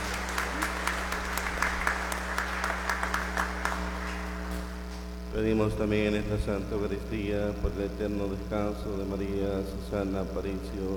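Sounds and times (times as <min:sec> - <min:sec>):
audience applause: 0:00.0 - 0:04.8
constant low electrical hum: 0:00.0 - 0:10.9
speech: 0:05.4 - 0:10.9.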